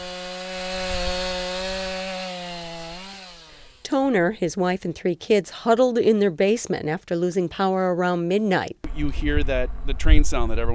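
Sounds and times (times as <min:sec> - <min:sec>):
chainsaw cutting storm-damaged trees: 0:00.0 - 0:04.3
speech: 0:04.1 - 0:10.7.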